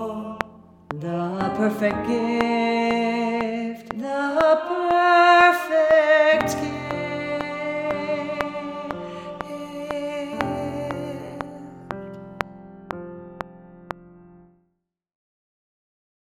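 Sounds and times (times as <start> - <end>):
tenor singing: 0.0 - 12.2.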